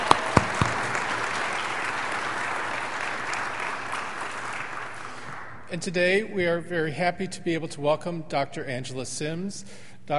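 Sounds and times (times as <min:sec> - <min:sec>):
audience applause: 0:00.0 - 0:05.6
speech: 0:05.7 - 0:10.1.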